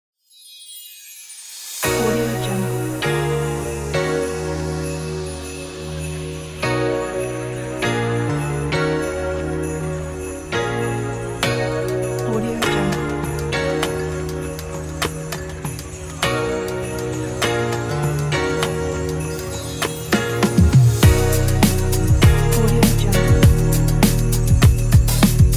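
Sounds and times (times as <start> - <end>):
christmas music: 0.2 - 25.5.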